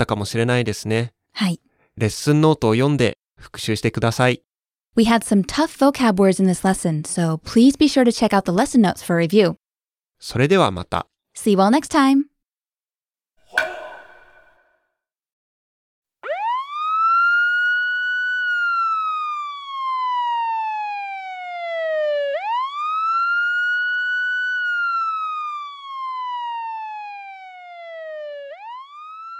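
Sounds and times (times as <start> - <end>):
speech: 0.0 - 9.6, 10.2 - 12.3
tsunami warning siren: 16.2 - 29.3.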